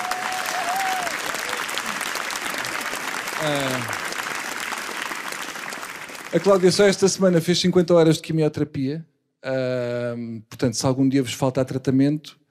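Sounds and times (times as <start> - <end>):
crowd applause: 0.0 - 7.3
speech: 3.4 - 4.0, 6.3 - 12.4.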